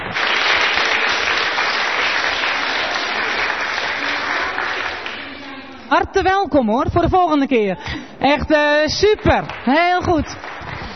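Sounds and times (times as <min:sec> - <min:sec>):
audience applause: 0:00.0 - 0:05.4, 0:09.5 - 0:10.9
speech: 0:05.9 - 0:10.5.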